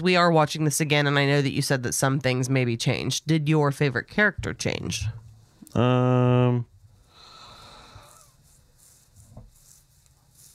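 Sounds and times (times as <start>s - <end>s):
speech: 0.0s - 6.7s
voiced yawn: 5.7s - 6.6s
breathy exhaling: 7.0s - 8.4s.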